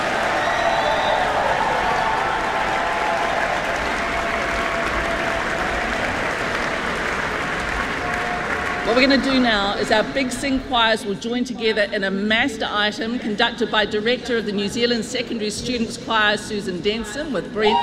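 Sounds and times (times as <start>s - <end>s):
audience applause: 0.0s - 9.9s
speech: 9.0s - 17.8s.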